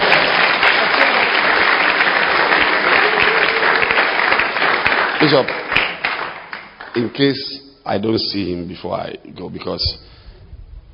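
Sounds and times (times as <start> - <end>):
audience clapping hands: 0.0 - 7.5
speech: 5.2 - 5.6, 7.0 - 10.1.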